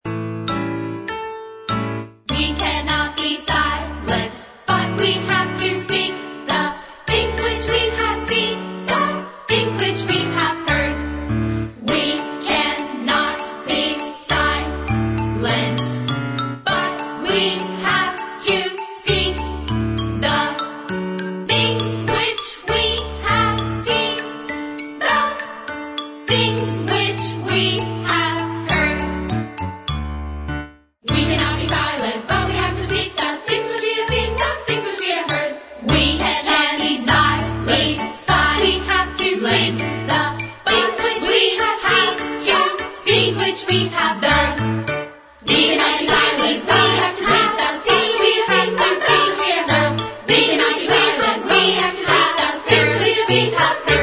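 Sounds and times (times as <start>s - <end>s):
melody: 0.4s - 54.0s.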